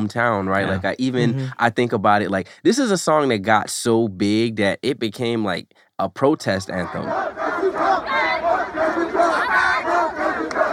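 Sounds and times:
speech: 0.0 - 8.3
crowd of protesters yelling outside of Trump Tower: 6.8 - 10.7.

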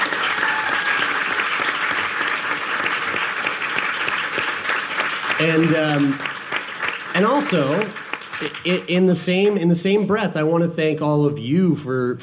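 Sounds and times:
audience cheering: 0.0 - 8.8
audience clapping: 0.0 - 10.0
speech: 5.4 - 6.3, 7.2 - 12.2.

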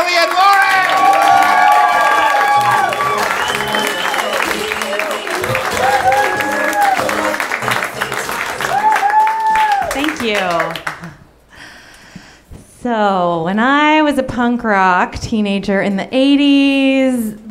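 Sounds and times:
audience applause: 0.0 - 11.2
cheers and whoops: 0.3 - 7.4, 8.5 - 10.0
speech: 13.5 - 17.4.

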